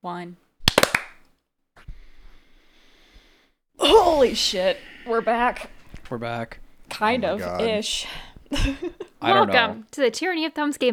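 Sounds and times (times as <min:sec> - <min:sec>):
speech: 0:00.0 - 0:00.5, 0:04.0 - 0:10.9
hand clap for audio sync: 0:00.6 - 0:01.3
laughter: 0:03.8 - 0:09.6.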